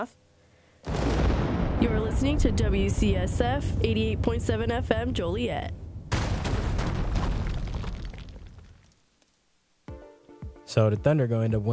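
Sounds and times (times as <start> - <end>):
speech: 0.0 - 1.0, 1.8 - 5.8, 10.7 - 11.7
rumbling explosion sound effect: 0.8 - 8.9
crackling debris: 0.8 - 9.4.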